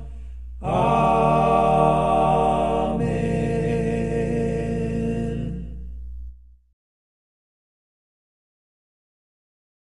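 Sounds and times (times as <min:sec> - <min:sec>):
a cappella hymn: 0:00.0 - 0:06.2.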